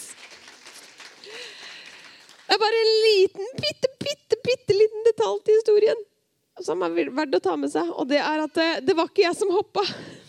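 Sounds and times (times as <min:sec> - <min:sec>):
applause: 0:00.0 - 0:02.8
speech: 0:02.6 - 0:10.1.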